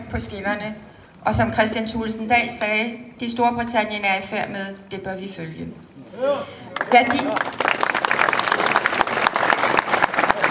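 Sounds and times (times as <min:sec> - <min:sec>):
speech: 0:00.1 - 0:07.7
audience applause: 0:06.8 - 0:10.4.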